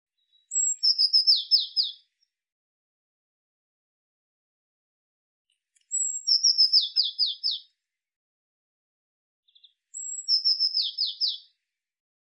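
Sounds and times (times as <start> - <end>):
Eurasian blue tit calling: 0.3 - 2.1, 5.9 - 7.7, 9.5 - 11.5.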